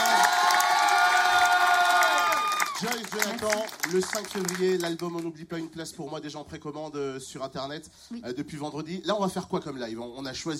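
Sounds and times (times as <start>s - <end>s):
audience cheering and applauding: 0.0s - 5.0s
speech: 3.9s - 10.5s.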